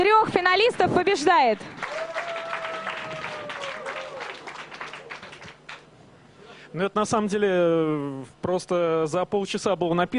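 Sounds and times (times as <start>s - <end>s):
speech: 0.5s - 2.2s, 6.7s - 10.1s
audience applause at a song contest final: 1.5s - 5.9s.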